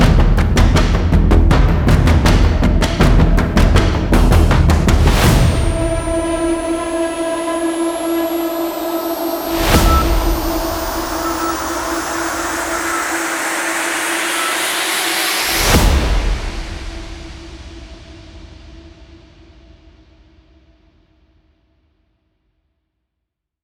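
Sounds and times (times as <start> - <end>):
tension music: 0.0 - 17.4.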